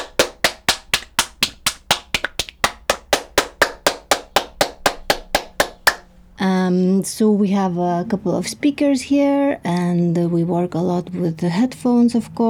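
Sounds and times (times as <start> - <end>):
hand claps echoing off a studio ceiling: 0.0 - 6.2
speech: 6.7 - 12.4.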